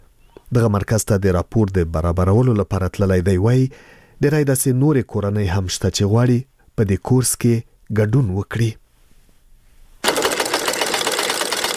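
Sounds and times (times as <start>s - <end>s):
speech: 0.5s - 8.8s
sewing machine running in an embroidery class: 10.0s - 11.7s.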